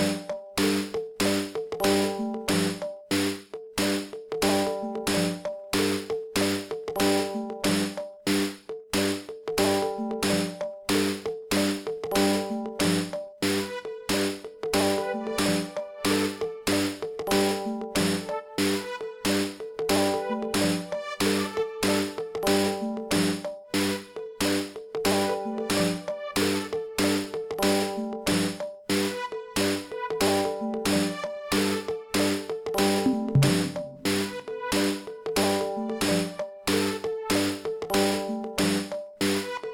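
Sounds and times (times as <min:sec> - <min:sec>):
gamelan: 0:00.0 - 0:39.7
synth: 0:32.9 - 0:34.3.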